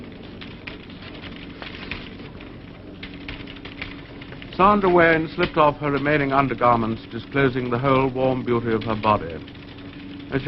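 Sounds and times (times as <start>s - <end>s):
machine setting its own type and printing a check copy: 0.0s - 10.4s
speech: 4.6s - 9.6s.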